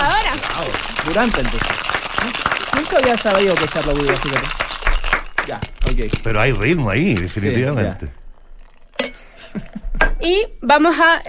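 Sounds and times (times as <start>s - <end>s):
cocktail shaker with ice being shaken: 0.0s - 6.4s
speech: 1.1s - 4.7s, 5.5s - 8.2s, 9.6s - 11.2s.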